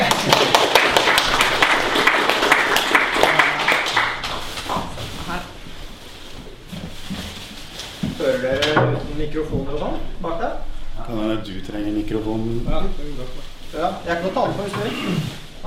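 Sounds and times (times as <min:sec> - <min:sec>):
people clapping: 0:00.0 - 0:05.2
speech: 0:09.2 - 0:15.6.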